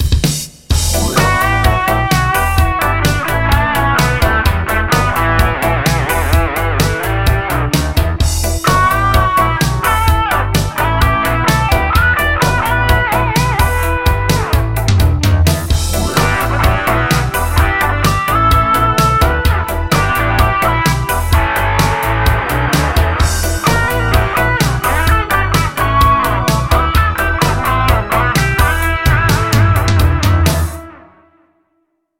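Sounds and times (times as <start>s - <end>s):
guitar through effects box: 0.8s - 31.6s.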